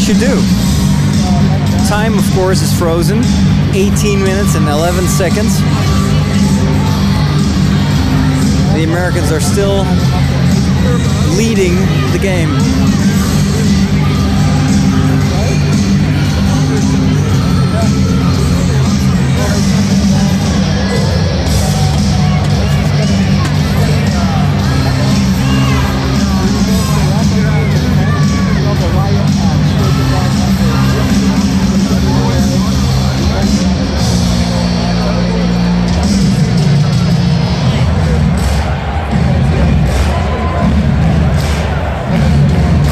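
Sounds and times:
hockey arena crowd cheering and yelling: 0.0s - 42.9s
speech: 0.1s - 0.6s, 1.3s - 6.0s, 8.8s - 13.0s.

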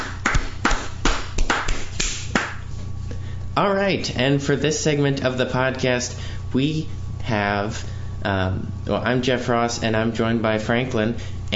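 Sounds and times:
hand clapping: 0.0s - 2.7s
speech: 3.6s - 11.5s.

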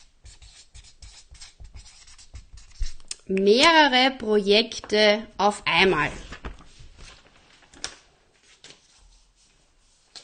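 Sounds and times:
pen scratching across paper writing a list: 0.0s - 3.0s
speech: 3.3s - 6.3s.

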